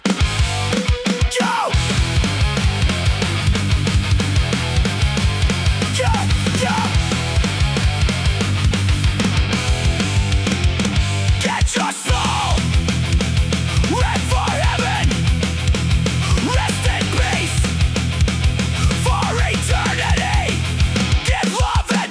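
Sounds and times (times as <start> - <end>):
punk rock keyboards: 0.0 - 22.0.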